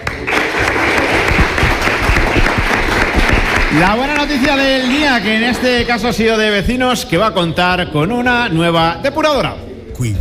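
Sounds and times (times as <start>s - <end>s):
crowd applauding: 0.0s - 6.6s
speech: 3.7s - 10.1s.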